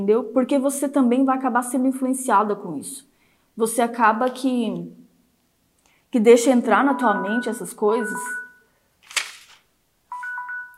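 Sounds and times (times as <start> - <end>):
speech: 0.0 - 5.0, 6.1 - 8.4
phone alarm ringtone: 6.8 - 8.7, 10.1 - 10.7.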